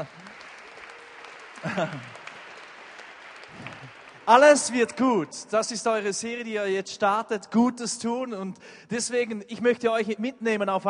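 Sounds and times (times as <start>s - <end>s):
speech: 0.0s - 0.2s, 1.6s - 2.2s, 3.5s - 10.8s
audience applause: 0.0s - 5.3s
laughter: 1.5s - 2.3s.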